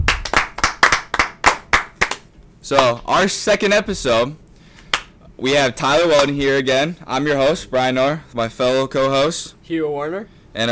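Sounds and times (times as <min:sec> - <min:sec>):
hand clapping: 0:00.0 - 0:03.0, 0:04.8 - 0:05.2
speech: 0:02.6 - 0:04.4, 0:05.4 - 0:10.7.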